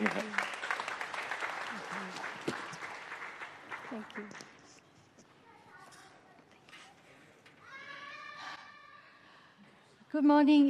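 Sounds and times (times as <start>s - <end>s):
congregation applause welcoming a speaker at a church service: 0.0s - 4.8s
speech: 10.2s - 10.6s.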